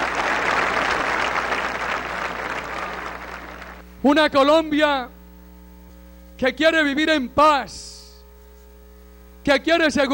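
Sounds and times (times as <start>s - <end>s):
crowd applause: 0.0s - 3.8s
speech: 4.0s - 5.2s, 6.4s - 7.9s, 9.4s - 10.1s.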